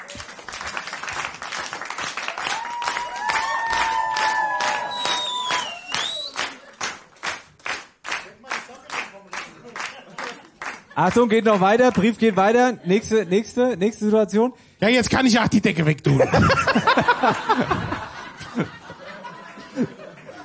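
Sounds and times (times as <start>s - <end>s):
audience clapping in rhythm: 0.0s - 12.7s, 17.0s - 20.4s
laughter: 9.4s - 14.0s, 16.1s - 20.4s
speech: 11.0s - 17.8s, 18.6s - 18.8s.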